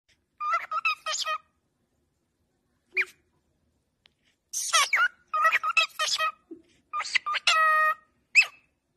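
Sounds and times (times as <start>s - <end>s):
cockatiel: 0.4s - 1.6s, 2.9s - 3.3s, 4.5s - 8.8s.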